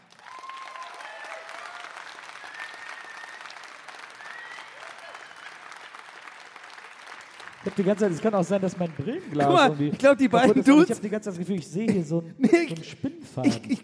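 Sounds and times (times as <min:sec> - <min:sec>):
audience applause: 0:00.0 - 0:10.9
laughter: 0:04.7 - 0:05.8, 0:07.7 - 0:13.8
speech: 0:07.6 - 0:13.8.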